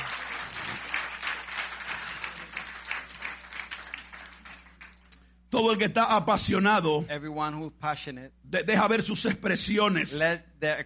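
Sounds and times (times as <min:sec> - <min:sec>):
crowd applause: 0:00.0 - 0:05.1
speech: 0:05.6 - 0:10.8.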